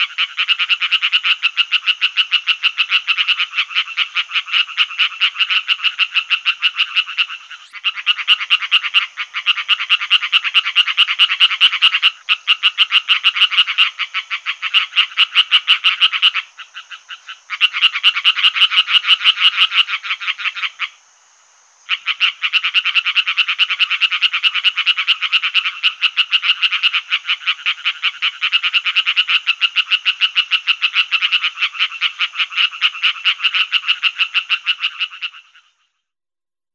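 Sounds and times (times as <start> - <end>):
European tree frog calling: 0.0 - 36.1.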